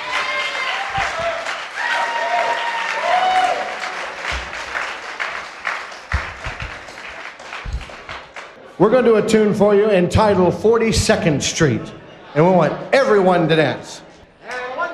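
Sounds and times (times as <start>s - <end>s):
cheers and whoops: 0.0s - 4.0s
audience applause: 0.0s - 8.6s
speech: 8.8s - 14.0s.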